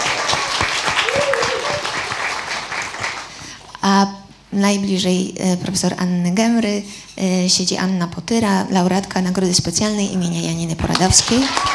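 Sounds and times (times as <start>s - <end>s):
crowd applauding: 0.0s - 3.4s, 11.0s - 11.7s
speech: 3.9s - 11.7s.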